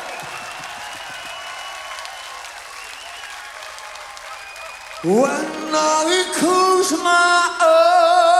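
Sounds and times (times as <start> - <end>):
audience applause: 0.0 - 7.0
speech: 5.0 - 8.2.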